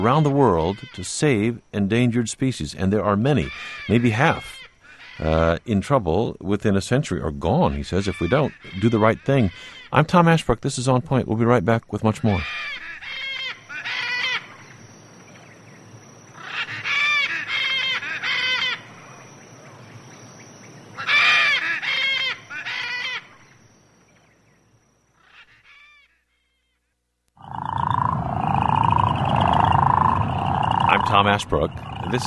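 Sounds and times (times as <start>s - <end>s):
Kentucky crawfish frog calls: 0.0s - 2.0s, 3.0s - 5.8s, 6.9s - 10.3s, 12.0s - 15.6s, 16.3s - 19.8s, 20.9s - 23.6s, 27.4s - 32.2s
speech: 0.0s - 4.6s, 5.2s - 12.8s, 31.5s - 32.2s.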